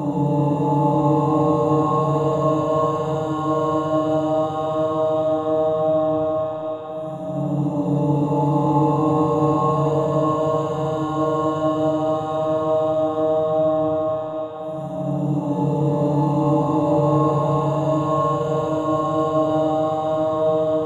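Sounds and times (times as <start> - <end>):
healing om chanting: 0.0 - 20.8.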